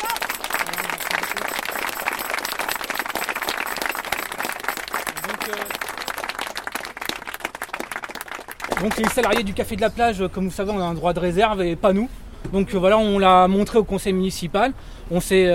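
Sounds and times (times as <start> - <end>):
audience applause: 0.0 - 9.5
speech: 8.8 - 15.5.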